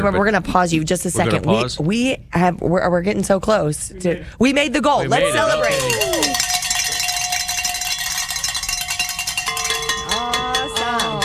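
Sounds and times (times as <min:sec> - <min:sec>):
speech: 0:00.0 - 0:06.4
celebratory bells ringing: 0:05.6 - 0:11.2.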